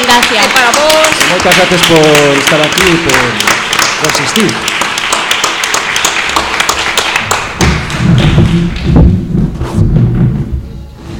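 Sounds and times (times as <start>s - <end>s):
audience applause: 0.0s - 9.0s
speech: 0.2s - 4.8s, 8.5s - 10.2s.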